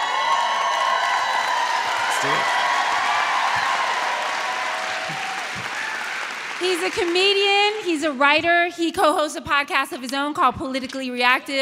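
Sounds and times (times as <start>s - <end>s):
audience applause: 0.0s - 8.2s
speech: 6.6s - 11.6s.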